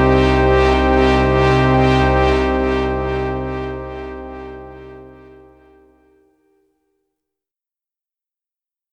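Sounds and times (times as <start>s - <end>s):
synth pad: 0.0s - 5.9s.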